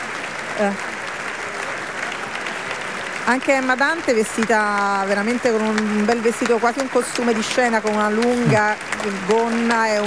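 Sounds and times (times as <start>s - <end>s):
theatre audience applause: 0.0s - 10.0s
speech: 0.6s - 1.0s, 3.3s - 10.0s.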